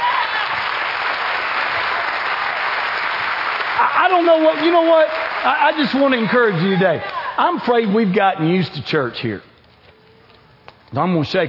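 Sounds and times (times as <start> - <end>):
audience applause: 0.0 - 8.1
speech: 3.8 - 9.5, 10.9 - 11.4.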